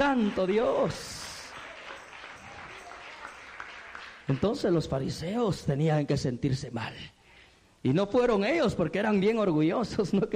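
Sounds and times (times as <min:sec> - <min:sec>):
speech: 0:00.0 - 0:01.2, 0:04.3 - 0:07.2, 0:07.8 - 0:10.3
church congregation clapping: 0:00.0 - 0:05.2.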